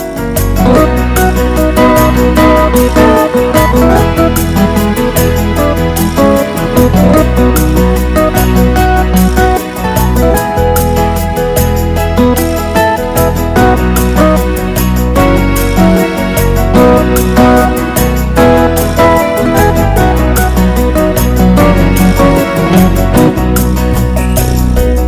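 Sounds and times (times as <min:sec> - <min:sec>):
sweet guitar playing: 0:00.0 - 0:25.0.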